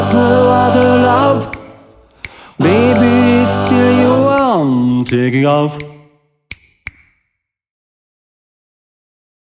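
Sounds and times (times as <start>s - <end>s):
a cappella singing: 0.0s - 6.1s.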